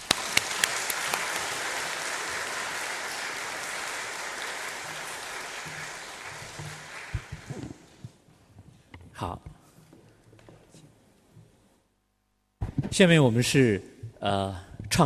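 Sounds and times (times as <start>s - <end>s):
audience applause: 0.0s - 8.0s
speech: 9.2s - 9.5s, 12.9s - 15.0s.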